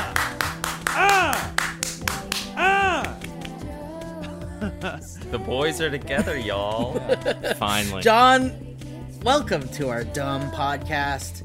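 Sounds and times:
rhythmic hand clapping from a small group: 0.0 - 3.8
vocal whoops: 0.8 - 1.7, 2.4 - 3.5
laughter: 4.5 - 5.1, 6.1 - 8.0
speech: 5.3 - 8.6, 9.2 - 11.4.

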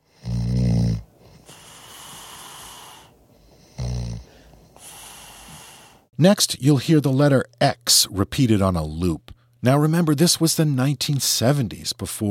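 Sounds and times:
man snoring while asleep: 0.0 - 6.1
speech: 6.2 - 12.2.

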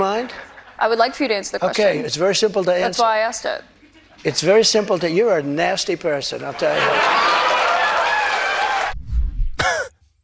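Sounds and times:
speech: 0.0 - 7.4
crowd hooting and laughing: 6.6 - 9.0
rising whoop: 7.2 - 9.0.

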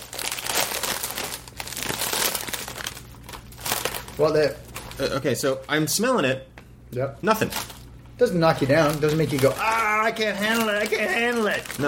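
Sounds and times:
crinkling chip bag being opened: 0.0 - 5.3, 7.4 - 7.9, 8.5 - 11.8
speech: 4.2 - 11.8.

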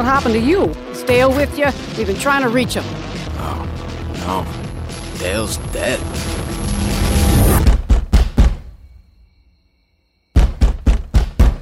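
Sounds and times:
speech: 0.0 - 6.4
noisy rumble: 0.0 - 7.6
heavy pounding knocks on a door: 7.6 - 8.7, 10.4 - 11.6.

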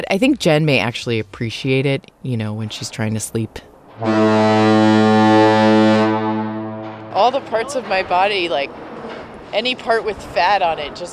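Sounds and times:
speech: 0.0 - 6.0, 7.2 - 11.1
foghorn blast: 4.0 - 7.7.

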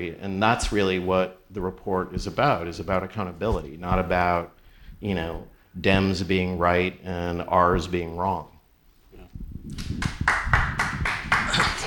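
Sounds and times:
speech: 0.0 - 8.5
audience applause: 10.2 - 11.8.

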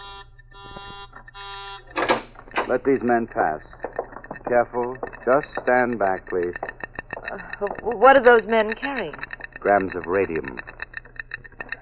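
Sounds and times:
warning buzzer in a hallway by a door: 0.0 - 2.0
speech: 2.7 - 3.8, 4.5 - 6.7, 7.3 - 10.7.

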